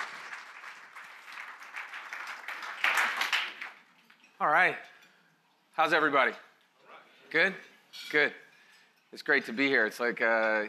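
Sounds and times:
audience applause welcoming a panel: 0:00.0 - 0:03.9
speech: 0:04.4 - 0:04.9, 0:05.8 - 0:06.5, 0:07.3 - 0:08.4, 0:09.1 - 0:10.6.

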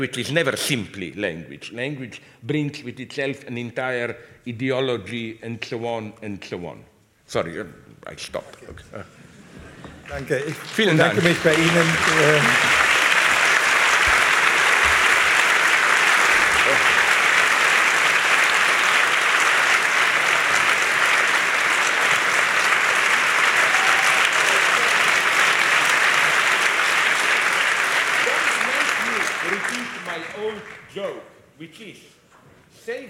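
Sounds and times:
speech: 0:00.0 - 0:09.2, 0:10.1 - 0:12.8
audience applause: 0:09.8 - 0:30.9.

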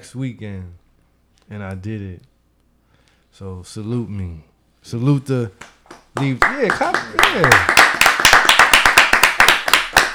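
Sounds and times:
speech: 0:00.0 - 0:00.8, 0:01.5 - 0:02.3, 0:03.3 - 0:08.3
people clapping: 0:05.6 - 0:10.1.

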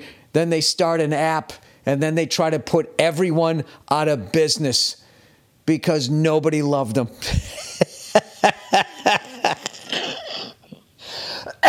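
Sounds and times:
speech: 0:00.4 - 0:05.0, 0:05.6 - 0:08.3
laughter: 0:07.3 - 0:10.2
coughing fit: 0:08.8 - 0:10.8, 0:11.5 - 0:11.6
raspy breathing and throat noises: 0:09.7 - 0:11.6
wheezy inhale: 0:09.8 - 0:11.6.

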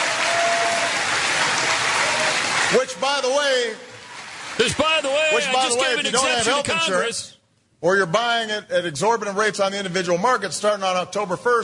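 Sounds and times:
audience cheering and applauding: 0:00.0 - 0:06.9
speech: 0:02.7 - 0:03.9, 0:04.6 - 0:11.6.

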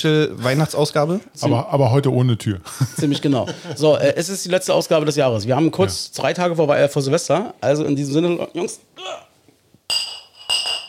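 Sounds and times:
speech: 0:00.0 - 0:09.3
laughter: 0:02.7 - 0:04.0
glasses clinking in a toast: 0:09.9 - 0:10.8.

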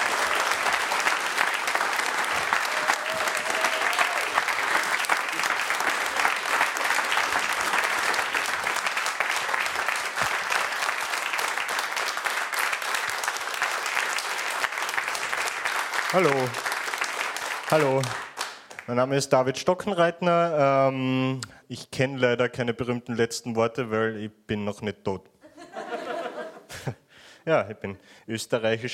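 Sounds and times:
audience applause: 0:00.0 - 0:18.9
speech: 0:16.2 - 0:16.7, 0:17.7 - 0:18.2, 0:18.9 - 0:25.3, 0:26.8 - 0:28.9
laughter: 0:25.4 - 0:27.0.

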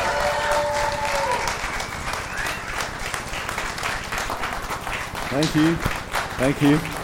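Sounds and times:
audience applause: 0:00.0 - 0:07.0
speech: 0:05.3 - 0:07.0.

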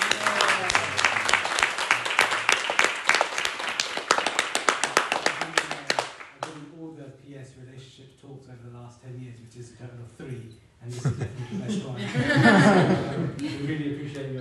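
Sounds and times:
crowd applause: 0:00.0 - 0:06.6
laughter: 0:10.9 - 0:14.1.

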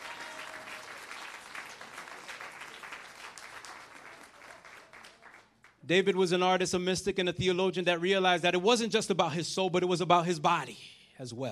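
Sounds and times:
audience clapping: 0:00.0 - 0:06.1
speech: 0:05.9 - 0:11.5.

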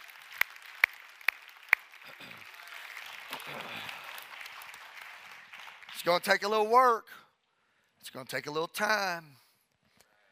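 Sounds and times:
sharp hand claps: 0:00.0 - 0:06.0
crowd clapping: 0:00.0 - 0:06.8
speech: 0:06.0 - 0:07.2, 0:08.0 - 0:09.4.

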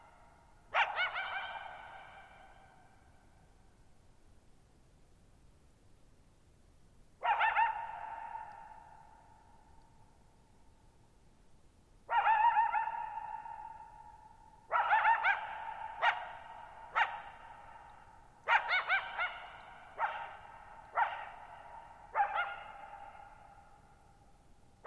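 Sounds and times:
coyote barking: 0:00.0 - 0:02.7, 0:07.2 - 0:08.9, 0:12.1 - 0:23.6
faint hiss: 0:00.0 - 0:24.8.

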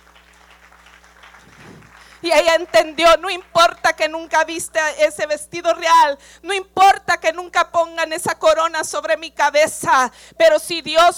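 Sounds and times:
audience applause: 0:00.0 - 0:04.1
speech: 0:02.2 - 0:11.1.

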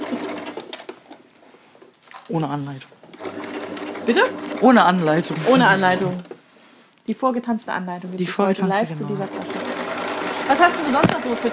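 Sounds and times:
sewing machine stitching a bag: 0:00.0 - 0:00.7, 0:03.2 - 0:06.3, 0:09.1 - 0:11.5
speech: 0:02.3 - 0:03.0, 0:04.0 - 0:06.3, 0:07.1 - 0:09.6, 0:10.5 - 0:11.5.

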